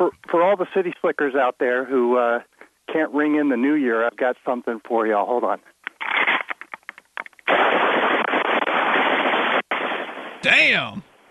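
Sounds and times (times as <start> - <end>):
speech: 0.0 - 5.8, 10.4 - 11.1
automatic AK-47 rifle fire over a phone line: 7.5 - 10.3.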